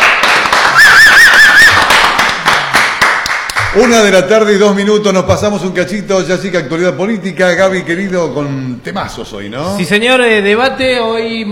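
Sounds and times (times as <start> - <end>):
studio crowd clapping: 0.0 - 4.2
bright warbling whistle: 0.7 - 1.8
speech: 3.7 - 11.5.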